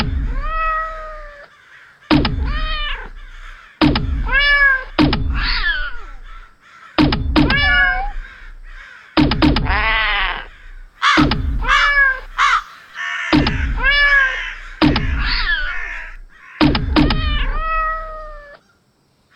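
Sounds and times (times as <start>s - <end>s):
sharp thumps: 0.0s - 1.0s, 2.1s - 12.7s, 13.3s - 18.3s
cats meowing: 0.2s - 1.5s, 2.4s - 3.2s, 4.2s - 6.2s, 7.5s - 8.2s, 9.7s - 10.5s, 11.6s - 12.6s, 13.6s - 14.6s, 17.0s - 18.6s.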